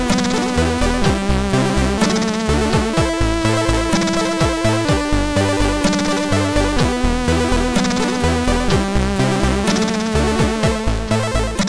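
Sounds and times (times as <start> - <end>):
melody wave on a MOS6581R4 sound chip: 0.0 - 11.6.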